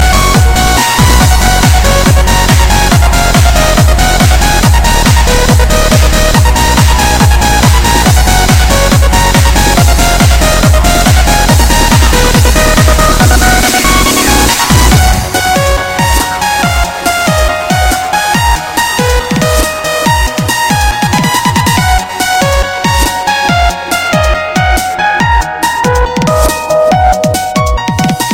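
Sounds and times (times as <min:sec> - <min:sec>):
trance music: 0:00.0 - 0:28.3.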